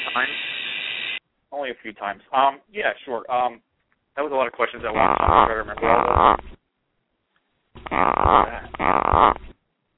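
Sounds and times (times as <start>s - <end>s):
speech: 0.2s - 0.5s, 1.6s - 6.6s, 7.8s - 9.4s
gecko croaks: 4.8s - 6.6s, 7.8s - 9.6s.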